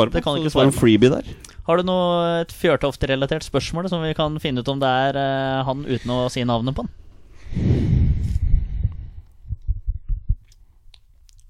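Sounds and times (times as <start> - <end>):
speech: 0.0 - 8.0
heavy breathing into a microphone: 7.1 - 9.5.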